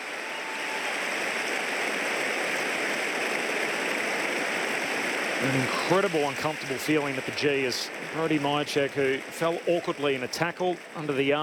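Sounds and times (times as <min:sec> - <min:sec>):
large stadium crowd cheering: 0:00.0 - 0:11.4
speech: 0:05.4 - 0:11.4.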